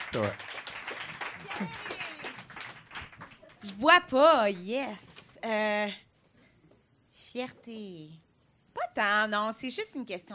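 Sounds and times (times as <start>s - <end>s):
audience applause greeting a comedian at a stand-up show: 0.0s - 3.9s
speech: 0.1s - 0.5s, 1.5s - 1.9s, 3.6s - 6.0s, 7.3s - 8.2s, 9.0s - 10.3s.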